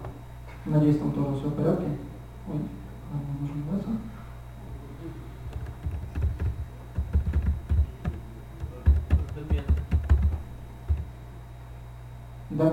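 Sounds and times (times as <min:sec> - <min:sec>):
speech: 0:00.7 - 0:04.2, 0:12.6 - 0:12.7
person typing a login on a computer keyboard: 0:05.5 - 0:11.1.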